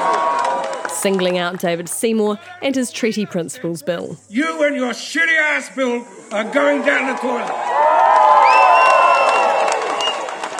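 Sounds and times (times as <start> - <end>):
applause: 0.0 - 3.7, 7.0 - 10.5
crowd cheering: 0.0 - 4.8, 5.6 - 10.5
speech: 1.0 - 7.9.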